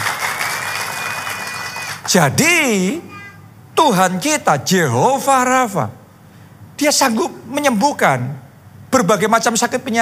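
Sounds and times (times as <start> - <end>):
audience applause: 0.0 - 2.2
speech: 2.1 - 3.1, 3.8 - 6.0, 6.8 - 10.0.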